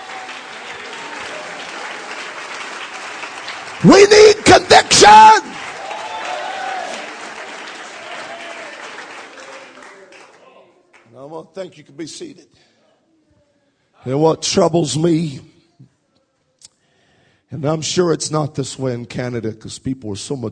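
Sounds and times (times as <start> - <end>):
audience clapping hands: 0.0 - 11.2
speech: 3.8 - 5.5, 11.6 - 12.8, 14.0 - 15.5, 17.5 - 20.5.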